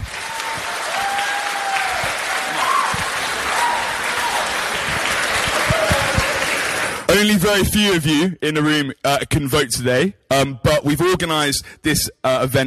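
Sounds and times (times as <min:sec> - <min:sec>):
crowd clapping: 0:00.0 - 0:07.5
faint whoops and voices calling out: 0:00.2 - 0:04.5
speech: 0:07.1 - 0:12.6.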